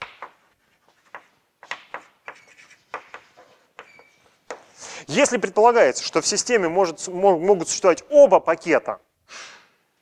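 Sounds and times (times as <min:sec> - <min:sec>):
pen writing a word by hand: 0:01.0 - 0:04.7
speech: 0:05.1 - 0:09.1.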